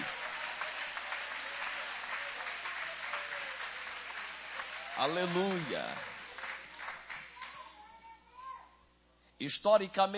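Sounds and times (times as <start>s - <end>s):
audience applauding: 0.0s - 7.7s
speech: 5.0s - 6.1s, 9.4s - 10.1s.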